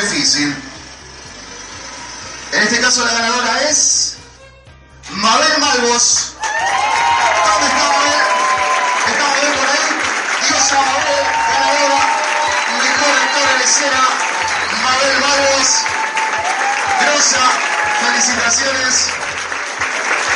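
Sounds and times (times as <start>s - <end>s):
speech: 0.0s - 0.7s, 2.5s - 4.2s, 5.1s - 7.9s, 13.6s - 14.2s, 15.0s - 16.0s, 17.2s - 19.2s
audience applause at a film festival closing ceremony in Mar del Plata: 6.4s - 20.3s.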